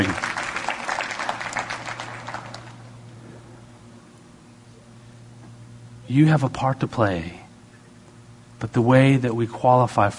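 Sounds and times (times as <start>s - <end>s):
speech: 0.0s - 0.2s, 6.1s - 7.4s, 8.6s - 10.1s
audience hand clapping: 0.0s - 3.0s.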